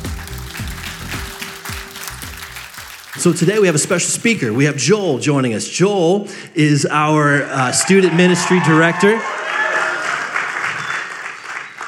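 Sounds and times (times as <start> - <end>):
audience applause for speaker: 0.0 - 4.9, 7.7 - 11.8
speech: 3.2 - 9.4.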